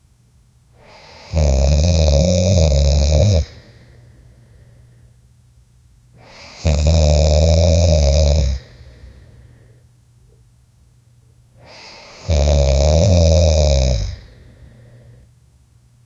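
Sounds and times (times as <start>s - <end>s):
10 or more men snoring in sleep: 0.9s - 3.7s, 6.2s - 9.0s, 11.6s - 14.5s.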